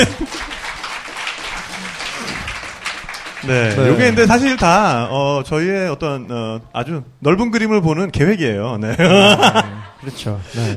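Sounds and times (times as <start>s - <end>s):
small group applauding: 0.0s - 5.0s
laughter: 2.1s - 5.1s, 10.2s - 10.7s
speech: 3.4s - 10.7s.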